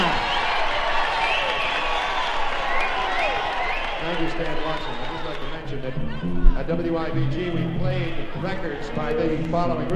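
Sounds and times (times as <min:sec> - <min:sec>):
round of applause: 0:00.0 - 0:06.0
speech: 0:04.4 - 0:09.9.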